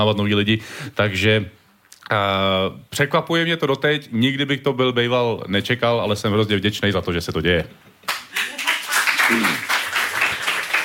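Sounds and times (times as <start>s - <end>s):
speech: 0.0s - 8.2s, 9.3s - 9.7s
audience applause in Radio Café: 8.1s - 10.8s.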